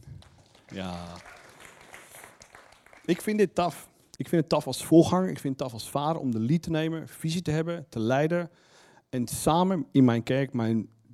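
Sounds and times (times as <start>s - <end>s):
audience applause: 0.0s - 3.5s
speech: 0.7s - 1.3s, 3.1s - 11.0s.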